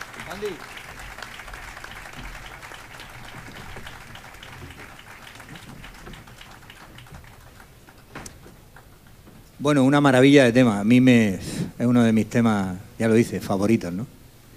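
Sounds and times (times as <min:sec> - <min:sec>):
audience applause: 0:00.0 - 0:09.2
speech: 0:00.3 - 0:00.8, 0:09.6 - 0:14.2.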